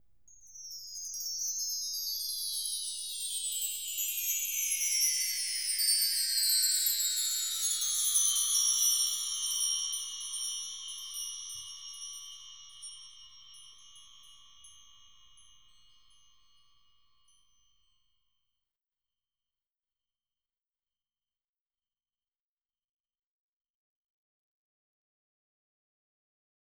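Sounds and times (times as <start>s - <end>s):
bells: 0.0s - 18.1s.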